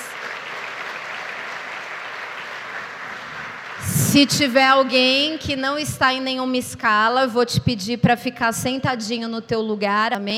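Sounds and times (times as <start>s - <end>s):
audience applauding: 0.0s - 4.2s
speech: 4.1s - 10.3s.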